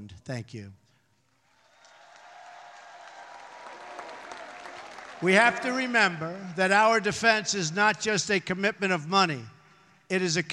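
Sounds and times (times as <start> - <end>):
speech: 0.3 - 0.8, 5.2 - 10.5
crowd applause: 1.4 - 7.0.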